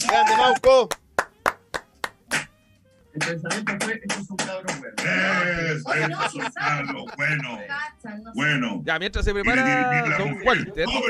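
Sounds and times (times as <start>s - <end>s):
hand claps: 0.0s - 2.5s
speech: 0.2s - 1.0s, 3.2s - 11.0s
laughter: 5.6s - 7.6s.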